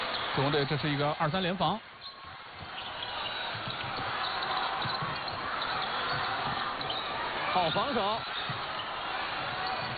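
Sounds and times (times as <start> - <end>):
basketball crowd roar: 0.0 - 9.9
speech: 0.4 - 1.9, 7.6 - 8.3
basketball being dribbled up the court: 2.2 - 9.9.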